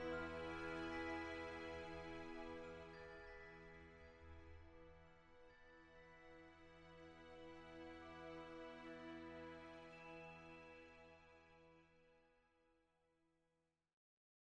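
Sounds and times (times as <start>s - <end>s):
strategy game ambient music: 0.0s - 5.5s, 6.2s - 11.6s.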